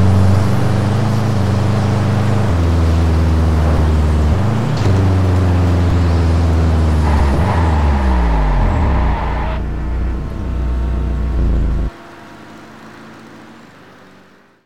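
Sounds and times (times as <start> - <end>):
stock Subaru Impreza WRX STI 22B: 0.0 - 14.6.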